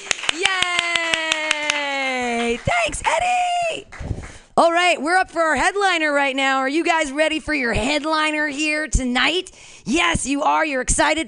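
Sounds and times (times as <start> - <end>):
audience clapping: 0.0 - 4.5
speech: 4.6 - 11.2.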